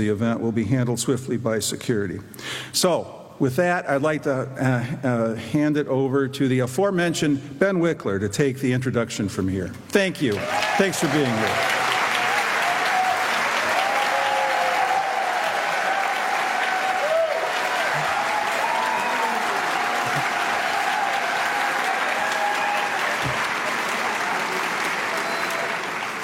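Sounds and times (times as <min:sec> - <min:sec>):
speech: 0:00.0 - 0:11.9
audience applause: 0:10.3 - 0:26.2.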